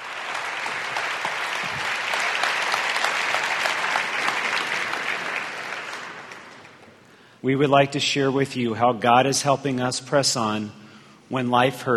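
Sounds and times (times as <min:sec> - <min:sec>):
audience applause at a church gathering: 0:00.0 - 0:07.0
speech: 0:07.4 - 0:11.9.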